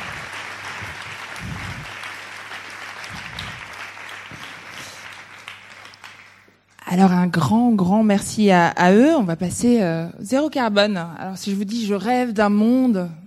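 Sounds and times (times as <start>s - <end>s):
faint low murmurs: 0.0s - 2.1s
audience applause: 0.0s - 6.6s
speech: 6.9s - 13.2s.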